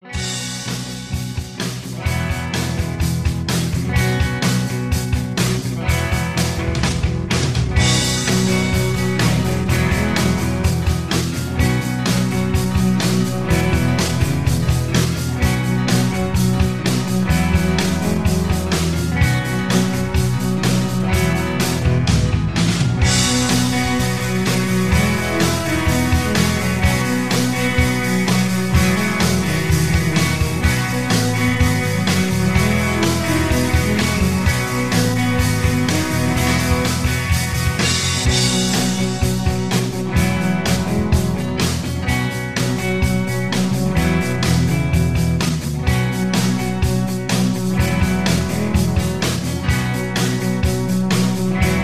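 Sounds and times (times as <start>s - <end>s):
instrumental music in a lower key: 0.0s - 51.8s.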